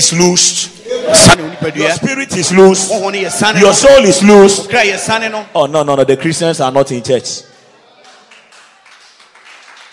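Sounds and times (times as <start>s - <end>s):
speech: 0.0s - 7.6s
audience clapping: 8.0s - 9.9s.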